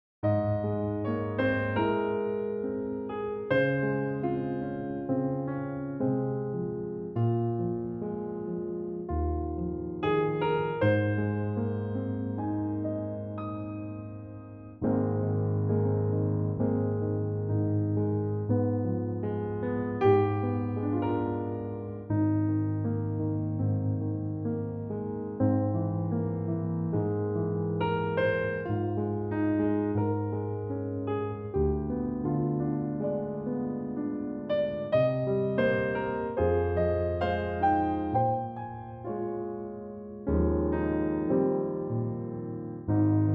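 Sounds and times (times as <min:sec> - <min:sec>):
piano in A-flat: 0:00.0 - 0:43.3.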